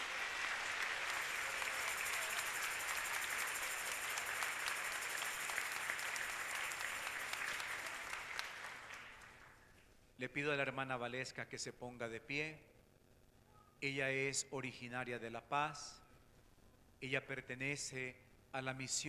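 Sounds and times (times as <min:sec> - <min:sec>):
crowd applause: 0:00.0 - 0:09.6
speech: 0:10.2 - 0:12.7, 0:13.8 - 0:16.0, 0:17.0 - 0:19.0.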